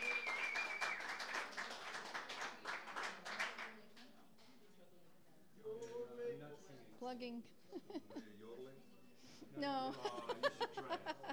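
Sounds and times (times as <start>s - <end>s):
audience applause welcoming the closing act: 0.0s - 3.7s
speech: 7.0s - 11.3s
laughter: 7.7s - 8.4s, 9.8s - 11.3s.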